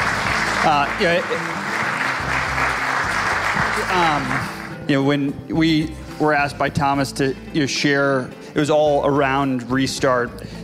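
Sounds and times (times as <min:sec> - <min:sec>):
crowd applause: 0:00.0 - 0:04.8
speech: 0:00.6 - 0:02.4, 0:03.8 - 0:10.6.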